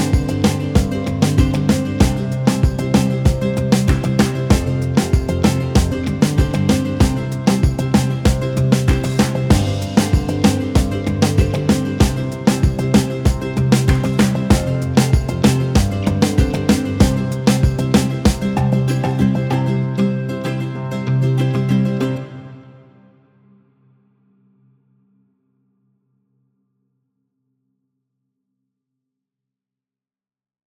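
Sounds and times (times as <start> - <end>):
summery underscore music: 0.0 - 22.8.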